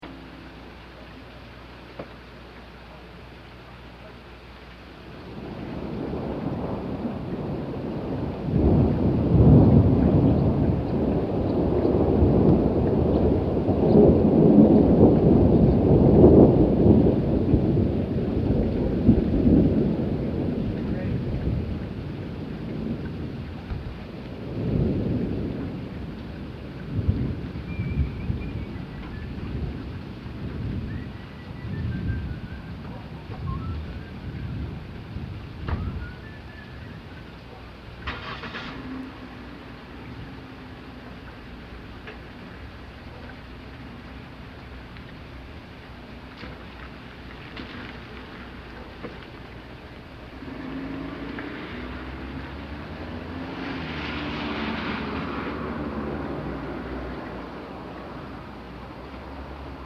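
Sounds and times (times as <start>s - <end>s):
rain: 0.0s - 59.8s
thunder: 5.2s - 36.8s, 38.0s - 40.5s, 50.3s - 57.5s.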